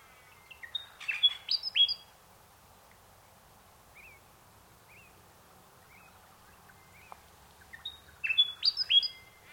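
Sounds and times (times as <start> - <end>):
unidentified bird chirping in mangroves: 0.0 - 2.2, 3.9 - 5.2, 5.8 - 9.5.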